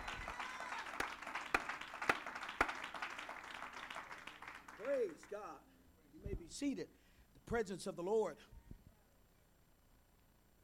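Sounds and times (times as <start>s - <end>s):
audience clapping hands: 0.0s - 5.5s
speech: 4.8s - 8.6s.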